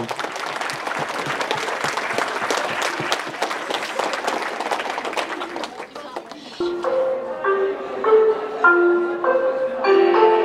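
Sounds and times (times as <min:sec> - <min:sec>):
audience applause: 0:00.0 - 0:06.7
laughter: 0:00.0 - 0:09.4
person talking: 0:05.9 - 0:10.3.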